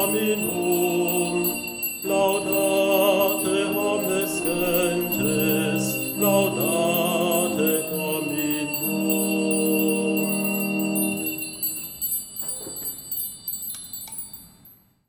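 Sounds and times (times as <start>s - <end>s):
person singing with organ: 0.0s - 11.4s.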